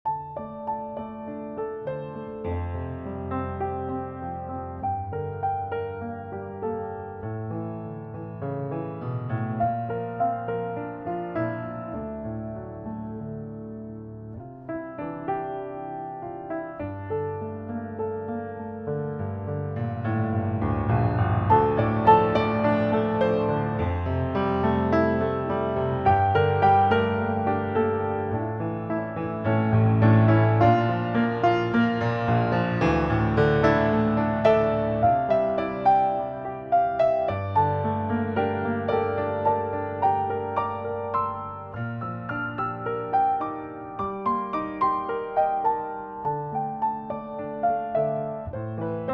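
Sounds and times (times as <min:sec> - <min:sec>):
piano music: 0:00.0 - 0:49.1.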